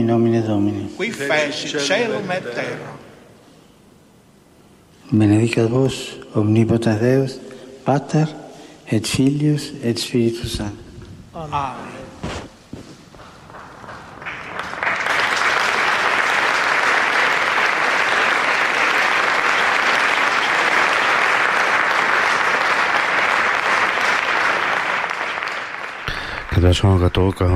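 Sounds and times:
speech: 0.0s - 3.1s, 5.1s - 10.8s, 11.4s - 12.0s, 26.7s - 27.5s
large crowd applauding the Pope's blessing: 13.1s - 27.5s.

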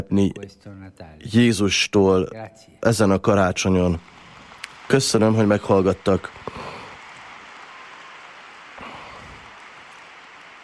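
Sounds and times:
speech: 0.0s - 4.2s, 4.9s - 6.8s
applause from pilgrims: 3.8s - 10.6s.

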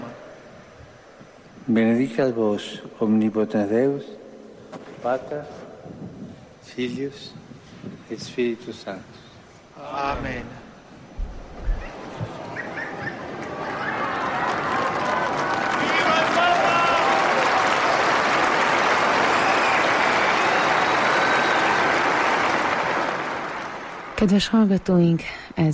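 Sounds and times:
speech: 1.7s - 4.2s, 5.0s - 6.0s, 6.7s - 10.6s, 24.2s - 25.7s
crowd applause at general audience: 11.6s - 24.2s.

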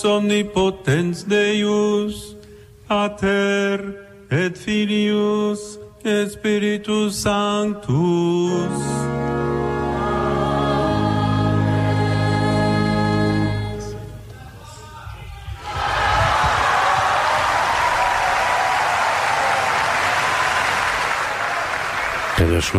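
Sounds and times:
speech: 0.0s - 9.6s, 22.6s - 22.7s
sustained harmonious tones: 8.1s - 14.3s
large audience applause: 15.6s - 22.7s.

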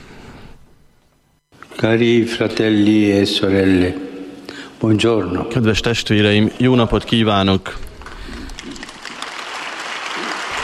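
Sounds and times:
speech: 1.8s - 4.1s, 4.8s - 7.9s
audience applause in audience hall: 8.0s - 10.6s.

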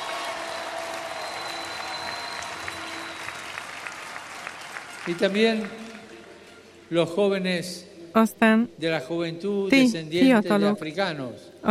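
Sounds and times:
audience applause: 0.0s - 6.4s
speech: 5.0s - 5.8s, 6.9s - 11.6s.

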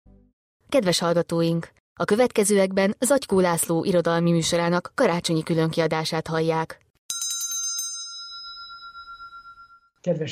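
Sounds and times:
speech: 0.7s - 6.8s, 10.0s - 10.2s
small bell ringing: 7.1s - 10.0s.

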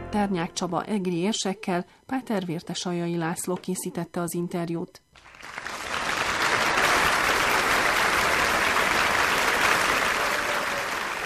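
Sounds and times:
speech: 0.1s - 5.7s
audience applause: 5.1s - 11.2s.

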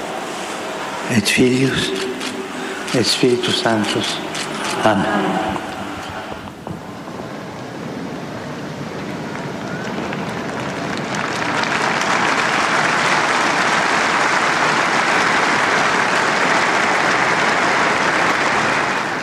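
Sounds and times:
pilgrims applauding in St. Peter's Square: 0.0s - 6.6s, 9.1s - 19.2s
speech: 1.1s - 2.3s, 2.9s - 5.7s.

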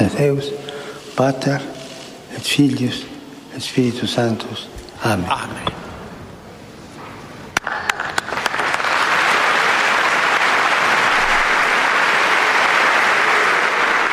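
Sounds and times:
speech: 0.2s - 1.8s, 2.4s - 5.8s
big applause: 7.6s - 14.1s.

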